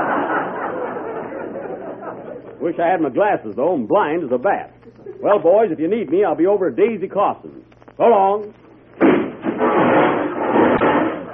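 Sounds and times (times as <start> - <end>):
laughter: 0.0 - 2.7, 4.9 - 5.4, 11.1 - 11.3
speech: 2.6 - 8.6
sharp thud: 9.0 - 11.2
boards breaking and debris falling: 9.0 - 11.3
crashing through a wall: 9.0 - 11.3.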